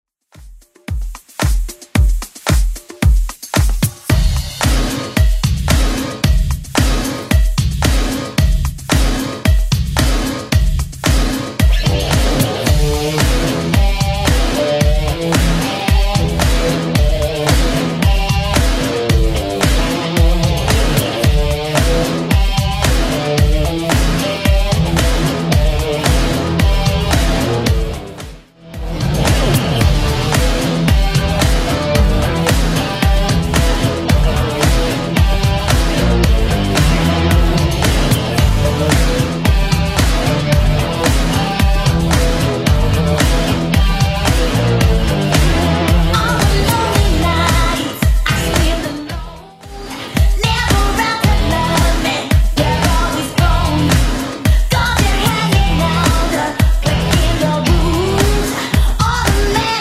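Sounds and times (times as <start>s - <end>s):
1980s club edit at 112 BPM: 0.4s - 59.7s.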